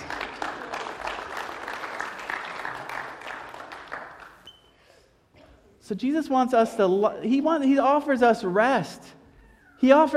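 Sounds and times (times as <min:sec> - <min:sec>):
round of applause: 0:00.0 - 0:04.4
speech: 0:05.9 - 0:09.2, 0:09.8 - 0:10.1.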